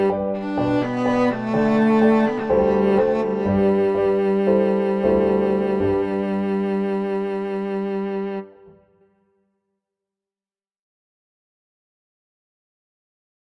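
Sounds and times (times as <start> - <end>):
cello: 0.0 - 9.1.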